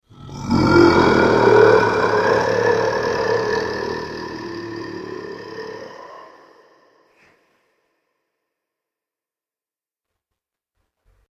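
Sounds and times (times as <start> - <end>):
monster music: 0.1 - 6.7.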